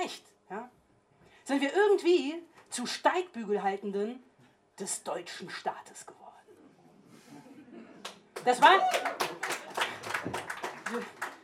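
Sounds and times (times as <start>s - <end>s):
speech: 1.5s - 6.2s, 8.4s - 9.2s, 10.2s - 11.2s
audience applause: 8.4s - 11.4s.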